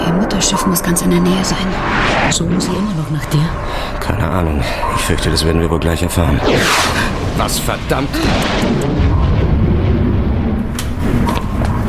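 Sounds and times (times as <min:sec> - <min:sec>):
speech: 0:00.4 - 0:08.8
thunder: 0:06.4 - 0:11.8.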